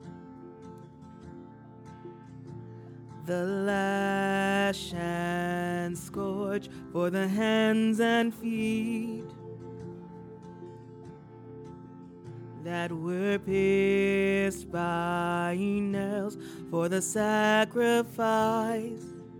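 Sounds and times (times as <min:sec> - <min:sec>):
lead tenor singing: 0:03.2 - 0:10.4, 0:12.6 - 0:19.3.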